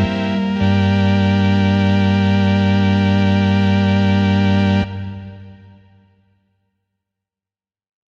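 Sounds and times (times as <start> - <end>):
dramatic music: 0.0 - 6.0.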